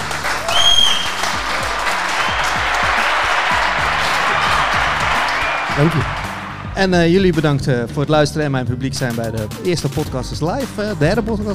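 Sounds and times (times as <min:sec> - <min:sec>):
live audience applause: 0:00.0 - 0:07.2
whoop: 0:00.4 - 0:06.3
speech: 0:05.8 - 0:06.2, 0:06.8 - 0:11.5.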